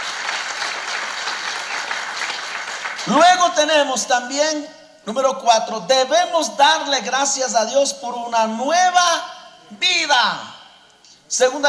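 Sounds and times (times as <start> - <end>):
applause: 0.0 - 3.2
speech: 3.0 - 10.5, 11.3 - 11.6.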